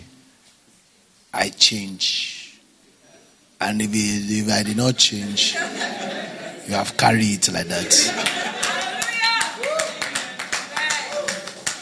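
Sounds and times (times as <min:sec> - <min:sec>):
speech: 0:01.4 - 0:02.3, 0:03.6 - 0:06.1, 0:06.7 - 0:08.4
laughter: 0:05.0 - 0:11.8
audience clapping: 0:07.8 - 0:11.8.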